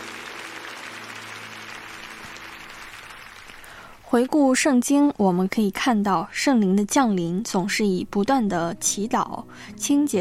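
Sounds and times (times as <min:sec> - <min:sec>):
crowd applause: 0:00.0 - 0:03.8
speech: 0:04.1 - 0:10.1.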